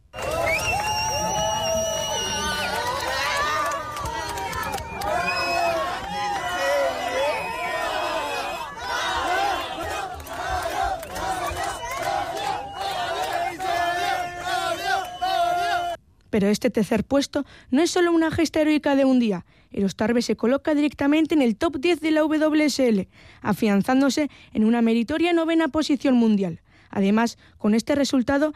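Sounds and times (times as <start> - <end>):
Australian crowd cheering at surf contest: 0.0 - 16.0
speech: 16.4 - 28.5.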